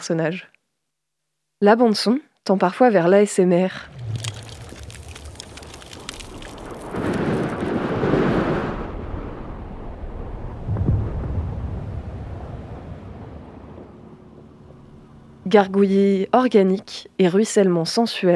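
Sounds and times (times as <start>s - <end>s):
speech: 0.0s - 0.6s, 1.6s - 4.1s, 15.5s - 18.3s
heavy buffeting hurricane wind: 3.8s - 15.5s
dense hurricane rain: 3.9s - 14.2s.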